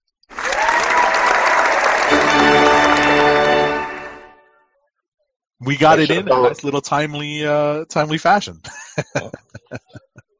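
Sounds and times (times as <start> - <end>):
applause sound effect: 0.3 - 4.4
laughter: 5.7 - 6.6, 8.6 - 10.2
speech: 5.7 - 10.0.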